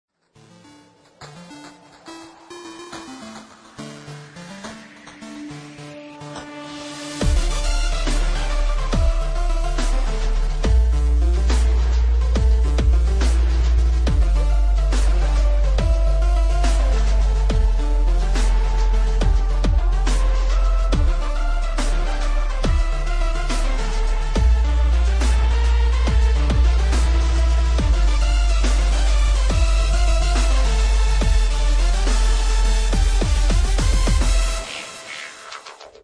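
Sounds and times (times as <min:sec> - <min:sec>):
dubstep mix: 0:00.3 - 0:36.0.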